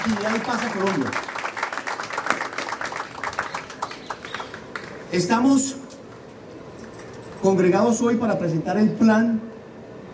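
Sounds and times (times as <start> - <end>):
speech: 0.0 - 1.3, 5.1 - 5.8, 7.4 - 9.5
applause for the Policía Nacional: 0.0 - 5.1.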